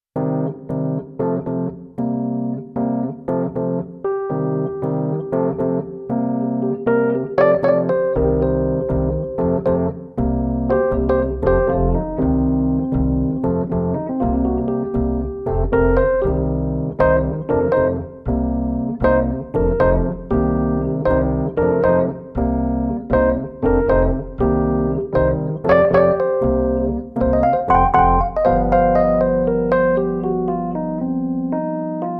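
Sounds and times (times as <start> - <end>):
Rhodes electric piano: 0.0 - 32.1.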